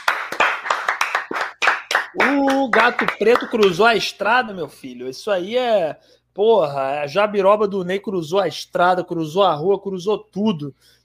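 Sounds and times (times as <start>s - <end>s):
round of applause: 0.0s - 3.9s
speech: 2.2s - 11.0s.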